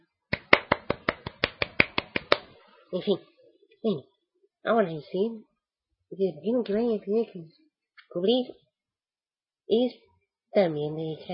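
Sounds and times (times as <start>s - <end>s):
hands clapping: 0.3s - 2.6s
speech: 2.9s - 5.5s, 6.1s - 8.6s, 9.7s - 11.3s.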